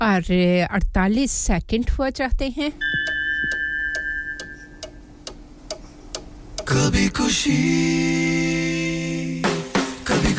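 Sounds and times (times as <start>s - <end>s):
speech: 0.1s - 3.1s, 6.8s - 9.4s
steady high hum: 2.3s - 9.4s
studio clock ticking: 2.8s - 6.9s.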